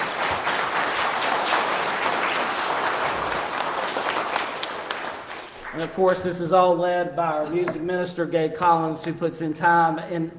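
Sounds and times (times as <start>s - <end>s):
applause for choir and accompanists: 0.0s - 6.1s
speech: 5.8s - 10.3s.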